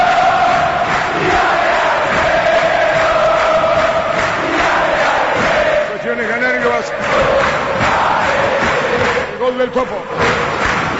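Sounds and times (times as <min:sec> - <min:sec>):
football supporters cheering and chanting in a stadium during a match: 0:00.0 - 0:10.9
speech: 0:09.6 - 0:10.2.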